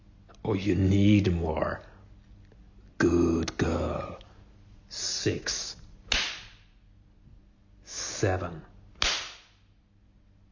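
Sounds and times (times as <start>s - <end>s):
speech: 0.5s - 1.9s, 3.0s - 3.8s, 4.9s - 5.7s, 8.2s - 8.7s
spanking slaps: 6.1s - 6.7s, 9.0s - 9.6s.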